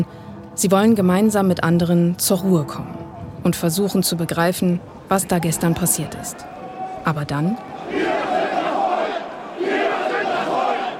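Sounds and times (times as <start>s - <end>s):
speech: 0.0s - 8.1s
shouting from a demonstration: 5.6s - 10.9s.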